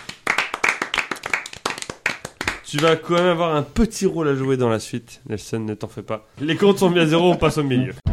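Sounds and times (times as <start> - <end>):
audience applauding an eliminated quiz show contestant: 0.0 - 3.4
speech: 2.7 - 8.0.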